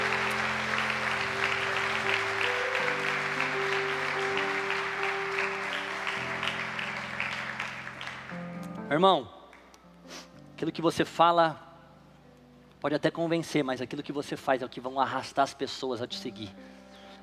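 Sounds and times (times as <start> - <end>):
audience applause: 0.0 - 8.6
speech: 8.9 - 9.4, 10.6 - 11.6, 12.8 - 16.8.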